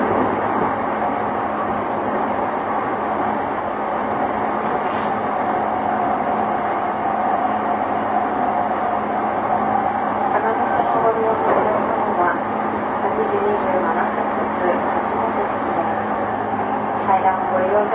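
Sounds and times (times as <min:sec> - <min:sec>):
JR E233 series train wheels rumbling bound for Odawara: 0:00.0 - 0:17.9
faint voices: 0:10.3 - 0:16.2.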